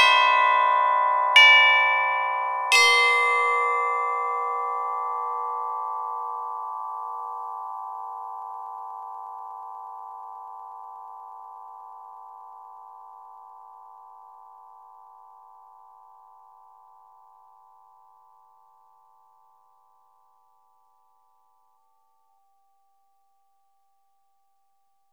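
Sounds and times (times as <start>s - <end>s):
carillon chime: 0.0s - 11.8s.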